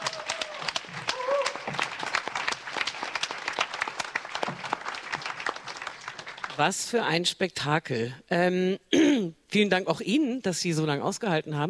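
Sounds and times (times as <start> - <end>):
audience applause in theatre hall: 0.0 - 6.7
speech: 6.6 - 11.6.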